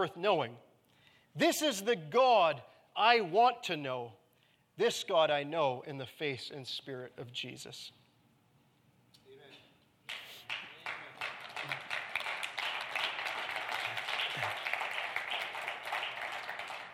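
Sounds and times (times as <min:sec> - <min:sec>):
speech: 0:00.0 - 0:00.7, 0:01.4 - 0:04.2, 0:04.8 - 0:08.0
audience applause: 0:10.1 - 0:16.9.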